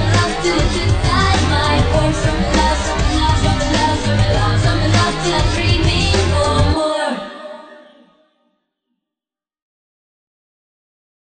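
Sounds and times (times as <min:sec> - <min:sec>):
chorus singing: 0:00.0 - 0:08.1.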